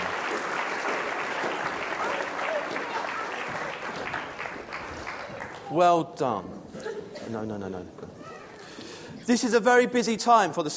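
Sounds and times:
audience applause: 0.0 - 5.9
speech: 5.7 - 6.6, 7.3 - 8.0, 9.3 - 10.7.

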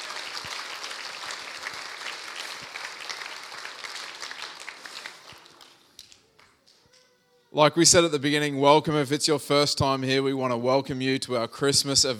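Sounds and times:
audience applause at a church Christmas carnival: 0.0 - 6.6
speech: 7.6 - 12.1.

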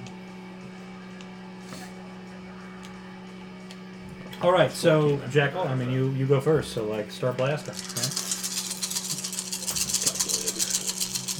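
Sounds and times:
low electrical hum: 0.0 - 11.3
speech: 4.4 - 8.2
many dice rattling: 7.6 - 11.3.

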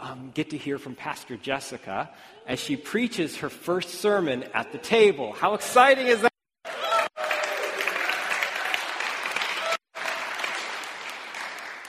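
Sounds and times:
speech: 0.2 - 6.3
audience clapping: 6.7 - 11.8.

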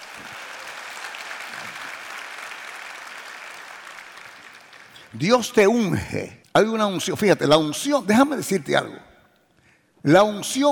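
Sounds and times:
audience applause: 0.0 - 5.1
speech: 5.1 - 9.1, 10.0 - 10.7.

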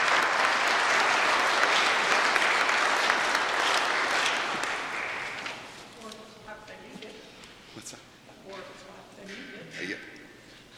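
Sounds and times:
round of applause: 0.0 - 5.7.

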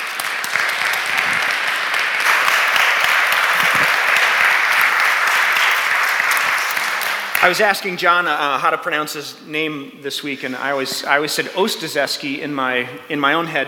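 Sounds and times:
audience applause welcoming a speaker onto the stage: 0.0 - 7.6
speech: 7.4 - 13.6.

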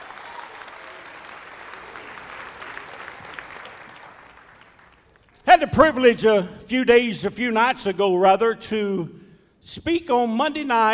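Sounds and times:
audience hand clapping: 0.0 - 5.4
speech: 5.5 - 10.9.

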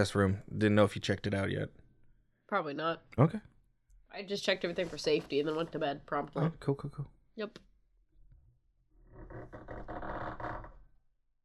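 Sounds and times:
speech: 0.0 - 1.8, 2.5 - 3.5, 4.1 - 7.7
floorboards creaking: 4.4 - 6.4, 8.9 - 11.0.

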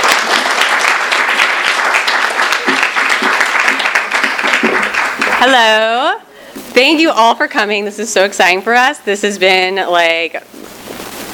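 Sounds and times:
audience applause: 0.0 - 5.6
speech: 5.4 - 6.2, 6.8 - 10.5.

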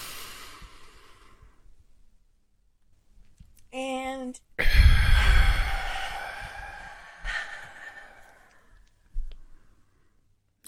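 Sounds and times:
deep breath drawn in during a guided breathing exercise: 0.0 - 1.6, 4.6 - 10.2.

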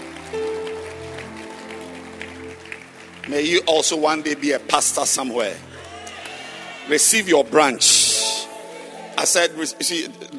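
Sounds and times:
audience clapping hands: 0.0 - 7.8
speech: 3.3 - 5.7, 6.9 - 8.2, 9.2 - 10.3.

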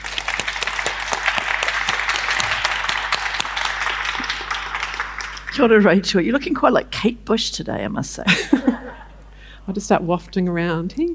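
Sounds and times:
audience applause welcoming a guest at a live talk event: 0.0 - 6.0
speech: 5.6 - 8.7, 9.7 - 11.1
laughter: 8.3 - 9.2.

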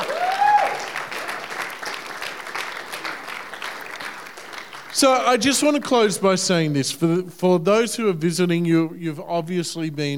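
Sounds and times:
audience applauding: 0.0 - 5.9
speech: 5.0 - 10.1.

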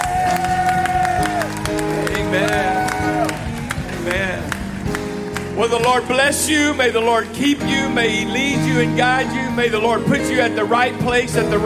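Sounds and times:
audience applause: 0.0 - 6.2
speech: 5.7 - 11.6.

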